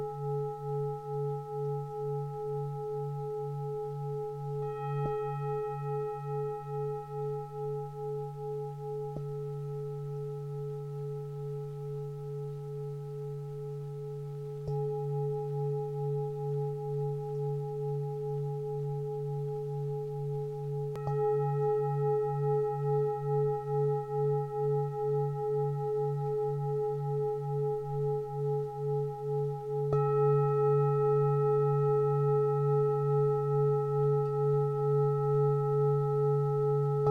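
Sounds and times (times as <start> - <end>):
Tibetan bowls humming: 0.0 - 37.0.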